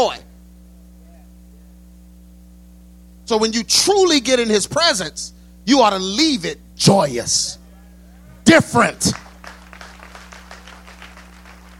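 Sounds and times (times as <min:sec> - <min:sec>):
speech: 0:00.0 - 0:00.3, 0:03.3 - 0:07.6, 0:08.5 - 0:09.2
low electrical hum: 0:00.0 - 0:11.7
scattered clapping from a small audience: 0:09.0 - 0:11.7.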